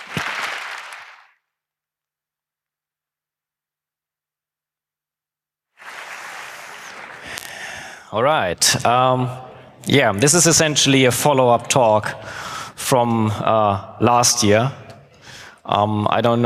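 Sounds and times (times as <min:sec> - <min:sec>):
audience applause: 0:00.0 - 0:01.3, 0:05.8 - 0:07.8
speech: 0:08.1 - 0:14.8, 0:15.7 - 0:16.4.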